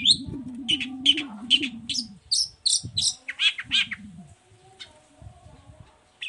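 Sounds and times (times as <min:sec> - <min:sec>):
long-tailed shrike song: 0:00.0 - 0:04.2.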